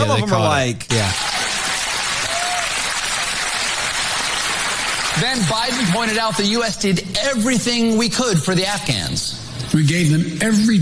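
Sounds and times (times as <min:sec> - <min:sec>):
speech: 0:00.0 - 0:01.5, 0:05.2 - 0:10.8
audience clapping in played clip: 0:01.1 - 0:06.0.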